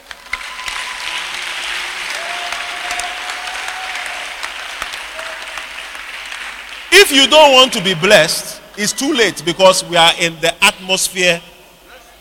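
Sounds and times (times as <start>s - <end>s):
audience applause: 0.0s - 9.3s
speech: 7.0s - 11.5s.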